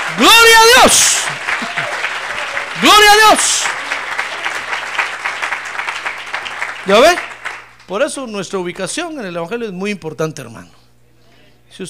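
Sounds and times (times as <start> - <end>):
audience applause: 0.0 - 7.9
speech: 0.2 - 2.0, 2.8 - 3.8, 6.9 - 7.3, 7.9 - 10.8.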